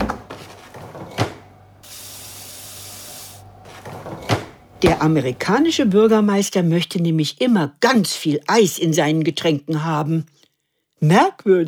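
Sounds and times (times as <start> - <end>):
freezer opening clunk: 0.0 - 1.6, 3.7 - 5.9
tap water rushing as ice cube trays are refilled: 0.0 - 5.0
speech: 4.8 - 10.4, 11.0 - 11.6.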